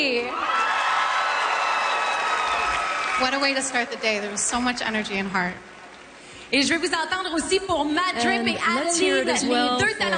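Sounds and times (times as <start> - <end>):
crowd cheering for performers: 0.0 - 4.4
speech: 3.2 - 5.7, 6.5 - 10.1.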